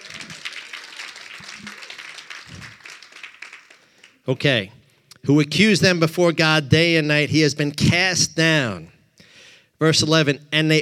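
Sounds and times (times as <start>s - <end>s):
audience clapping: 0.0s - 4.4s
speech: 4.3s - 8.9s, 9.8s - 10.8s.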